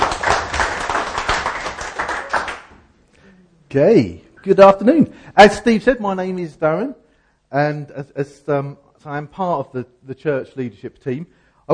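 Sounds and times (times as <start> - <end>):
audience clapping: 0.0 - 2.8
speech: 3.7 - 11.7.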